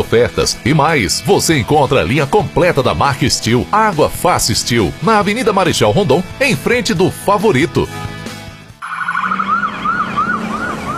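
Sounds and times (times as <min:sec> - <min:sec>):
speech: 0:00.0 - 0:08.1
ambulance siren wailing: 0:08.8 - 0:10.9.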